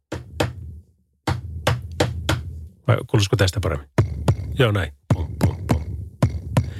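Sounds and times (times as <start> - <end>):
tennis ball bouncing on the floor: 0.1 - 0.6, 1.3 - 2.5, 4.0 - 6.7
speech: 2.9 - 3.9, 4.6 - 5.0.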